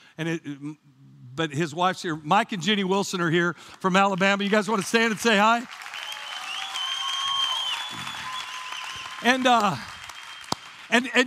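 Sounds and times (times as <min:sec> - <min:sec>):
speech: 0:00.2 - 0:05.8, 0:09.2 - 0:09.9, 0:10.9 - 0:11.2
audience applause: 0:04.4 - 0:11.2.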